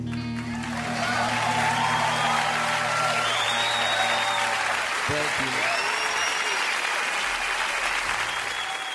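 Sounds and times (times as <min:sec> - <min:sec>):
audience applause: 0:00.1 - 0:08.9.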